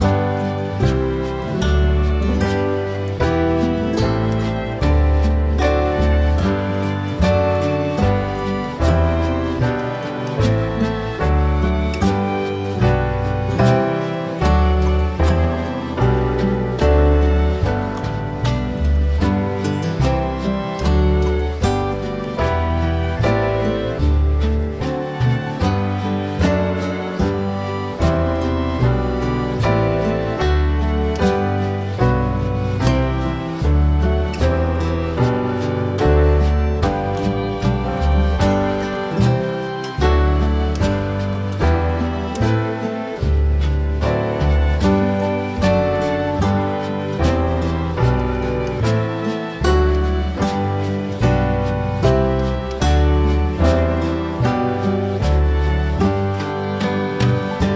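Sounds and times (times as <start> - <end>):
E flat and E major scale: 0.0 - 57.7.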